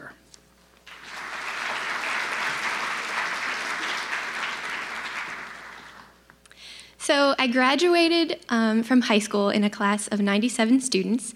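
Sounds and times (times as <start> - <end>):
audience applause: 0.8 - 6.2
speech: 7.1 - 11.3.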